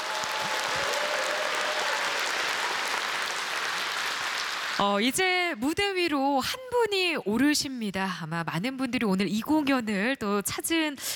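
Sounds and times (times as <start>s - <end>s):
large audience applause: 0.0s - 4.8s
speech: 4.8s - 11.1s.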